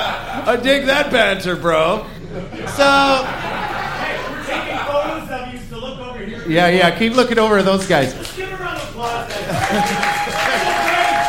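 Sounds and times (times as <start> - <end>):
speech: 0.0 - 3.5, 6.5 - 10.5
laughter: 0.0 - 6.1, 8.2 - 11.2
audience applause: 8.0 - 11.2.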